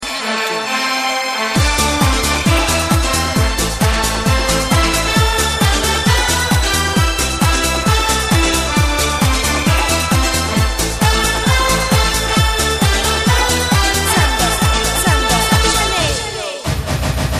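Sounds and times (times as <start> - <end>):
samba ringtone: 0.0 - 16.7.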